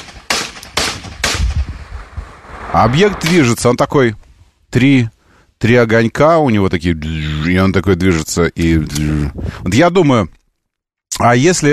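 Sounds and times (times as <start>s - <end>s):
non-automatic small-arms gunshots: 0.0s - 3.4s
speech: 2.8s - 10.4s, 11.2s - 11.7s.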